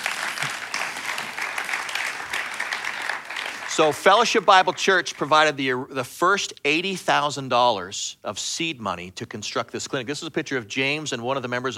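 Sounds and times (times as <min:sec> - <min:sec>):
audience applause: 0:00.0 - 0:05.5
speech: 0:03.8 - 0:11.7.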